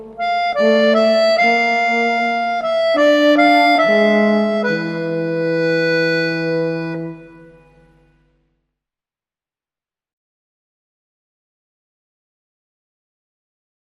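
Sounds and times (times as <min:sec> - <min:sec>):
horn playing a waltz: 0:00.0 - 0:08.2.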